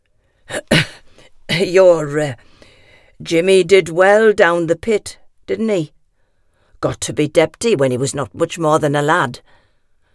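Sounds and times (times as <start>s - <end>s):
man coughing: 0.5s - 2.0s
speech: 1.6s - 2.5s, 3.2s - 6.0s, 6.8s - 9.6s.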